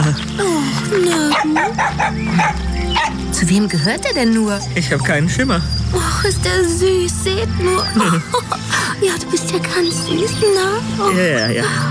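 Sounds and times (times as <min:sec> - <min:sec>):
speech: 0:00.2 - 0:02.7, 0:03.4 - 0:11.8
small dog barking: 0:01.3 - 0:03.2.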